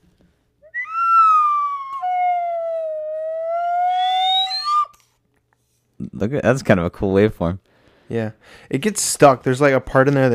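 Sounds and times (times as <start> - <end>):
slide whistle: 0.6 - 5.0
speech: 6.2 - 10.3.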